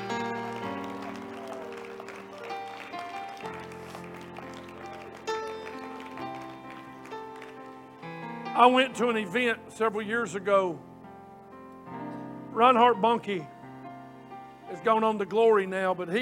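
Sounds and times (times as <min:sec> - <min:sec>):
audience clapping: 0:00.0 - 0:08.3
speech: 0:08.6 - 0:10.9, 0:12.6 - 0:13.5, 0:14.8 - 0:16.1.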